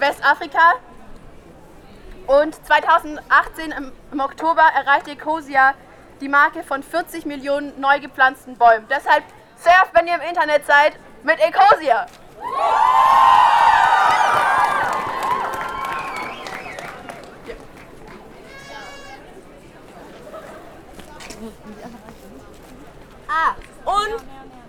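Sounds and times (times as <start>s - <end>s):
speech: 0.0s - 0.9s, 2.3s - 13.5s, 23.3s - 24.3s
crowd chatter: 0.0s - 24.6s
audience cheering and high whoops: 12.4s - 17.1s
audience clapping: 12.6s - 18.4s.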